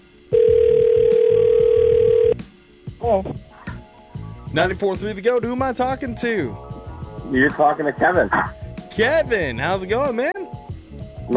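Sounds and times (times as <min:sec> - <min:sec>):
telephone dial tone of outgoing call: 0:00.4 - 0:02.4
speech: 0:03.1 - 0:03.4, 0:04.6 - 0:06.7, 0:07.3 - 0:10.4.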